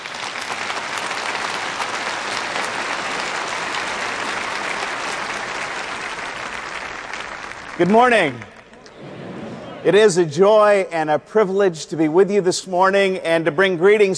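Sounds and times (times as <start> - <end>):
audience applause welcoming a speaker at a Reformed Church in America gathering: 0.0 - 9.2
speech: 7.8 - 8.5, 9.8 - 14.1.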